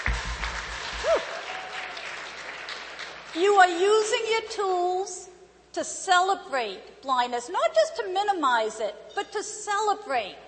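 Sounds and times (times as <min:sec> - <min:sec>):
audience clapping: 0:00.0 - 0:03.7
speech: 0:03.4 - 0:10.4.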